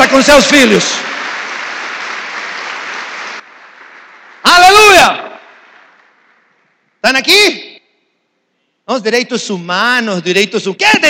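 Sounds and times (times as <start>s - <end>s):
audience applause: 0.0s - 6.8s
speech: 0.1s - 1.1s, 7.0s - 7.7s, 8.9s - 11.0s.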